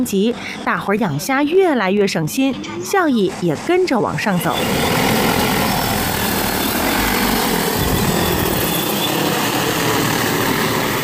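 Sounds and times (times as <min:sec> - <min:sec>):
speech: 0:00.0 - 0:05.6
drone propellers buzzing while feeding shrimp: 0:02.8 - 0:11.0.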